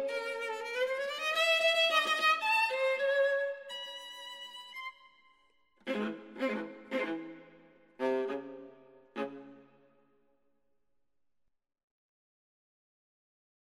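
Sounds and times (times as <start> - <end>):
viola capriccio: 0.0 - 5.2, 5.8 - 9.8.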